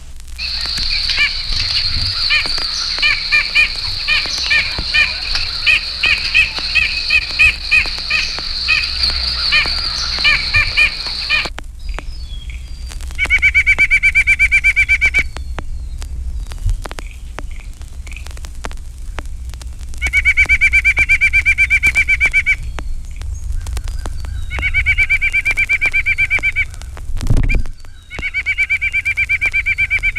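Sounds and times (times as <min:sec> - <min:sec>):
white-breasted nuthatch nasal yank calls: 0:00.4 - 0:12.5, 0:13.2 - 0:15.6, 0:20.0 - 0:22.9, 0:23.7 - 0:30.1
white-breasted nuthatch rapid spring song: 0:00.4 - 0:18.3, 0:20.0 - 0:30.1.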